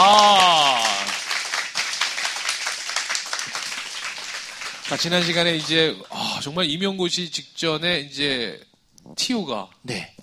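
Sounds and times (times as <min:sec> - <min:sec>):
audience applause welcoming guest: 0:00.0 - 0:06.1
speech: 0:04.9 - 0:10.2.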